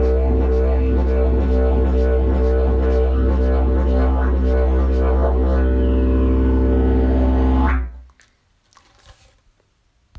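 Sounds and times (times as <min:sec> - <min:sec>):
didgeridoo: 0:00.0 - 0:08.1.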